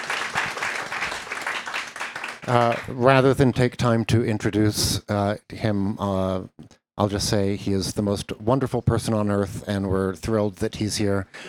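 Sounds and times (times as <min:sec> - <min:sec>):
audience applause welcoming an orchestra's music director: 0:00.0 - 0:03.0
speech: 0:02.4 - 0:11.4.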